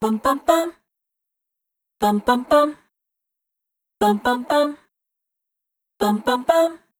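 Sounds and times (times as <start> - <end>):
dry multi-voice vocal sample loops: 0.0 - 0.8, 2.0 - 2.9, 4.0 - 4.9, 6.0 - 6.9.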